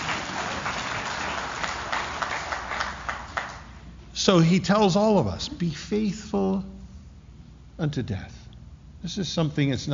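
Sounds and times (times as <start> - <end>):
audience clapping: 0.0 - 3.9
speech: 4.2 - 6.8, 7.8 - 8.4, 9.0 - 9.9.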